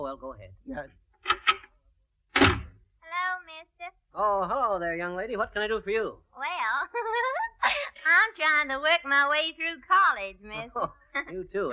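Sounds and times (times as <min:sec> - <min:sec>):
speech: 0:00.0 - 0:01.7, 0:03.6 - 0:07.4, 0:08.1 - 0:11.7
knocking at the basement door: 0:02.4 - 0:02.8.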